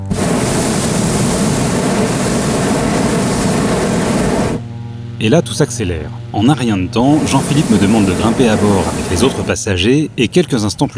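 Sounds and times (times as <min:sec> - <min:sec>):
hot-air balloon burners firing to heat the air: 0:00.0 - 0:04.6, 0:07.1 - 0:09.6
speech: 0:05.2 - 0:10.9.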